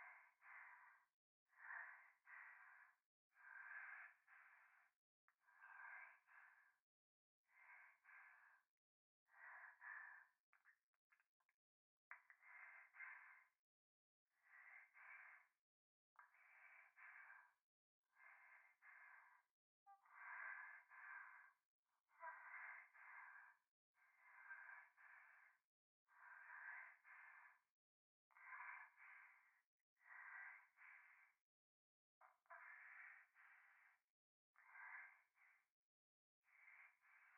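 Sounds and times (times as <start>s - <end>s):
breathing close to left ear in bath: 0.0s - 6.8s, 7.5s - 8.7s, 9.3s - 10.7s, 12.1s - 13.6s, 14.4s - 15.6s, 16.2s - 21.6s, 22.2s - 27.7s, 28.3s - 31.4s, 32.6s - 34.0s, 34.6s - 35.7s, 36.5s - 37.3s.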